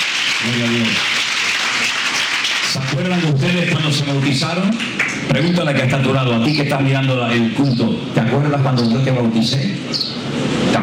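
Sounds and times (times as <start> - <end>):
church congregation applauding baptism candidates: 0.0 - 5.7
speech: 0.4 - 1.2, 3.0 - 10.6.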